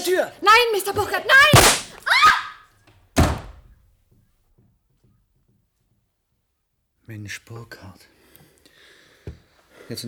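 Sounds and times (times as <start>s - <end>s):
speech: 0.0s - 1.8s, 7.1s - 8.2s, 9.9s - 10.0s
gunshot: 1.5s - 2.0s.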